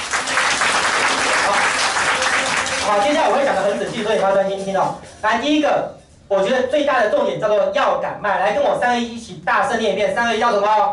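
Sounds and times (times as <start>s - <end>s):
enthusiastic audience applause: 0.0s - 4.0s
speech: 2.9s - 10.9s.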